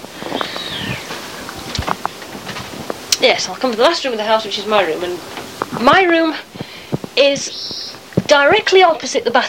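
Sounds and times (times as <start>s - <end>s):
bird screeching: 0.2s - 1.4s
speech: 3.2s - 6.6s, 7.2s - 9.4s.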